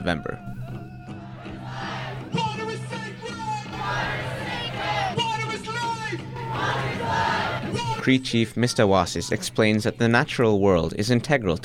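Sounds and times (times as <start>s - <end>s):
speech: 0.0s - 0.6s, 8.0s - 11.6s
crowd rallying outside court shouting and cheering: 0.6s - 9.5s.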